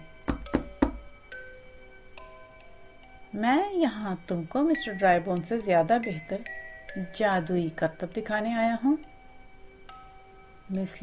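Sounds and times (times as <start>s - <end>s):
knocking on a door: 0.2s - 1.1s
speech: 3.4s - 9.1s, 10.7s - 11.0s.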